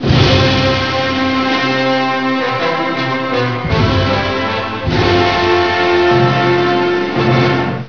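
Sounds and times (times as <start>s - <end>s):
prelude: 0.0s - 7.8s.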